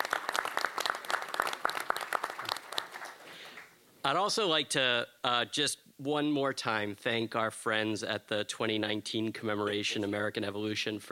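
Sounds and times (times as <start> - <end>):
audience applause: 0.0 - 3.8
speech: 4.1 - 11.1.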